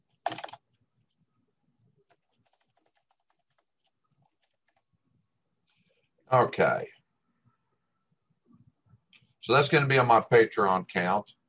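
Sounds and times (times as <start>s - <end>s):
typing a quick message on a computer keyboard: 0.2s - 0.6s, 2.1s - 4.9s
speech: 6.3s - 7.0s, 9.4s - 11.4s.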